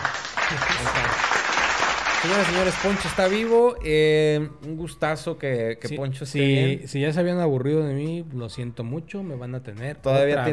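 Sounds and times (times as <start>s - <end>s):
applause: 0.0s - 3.6s
speech: 2.2s - 10.5s.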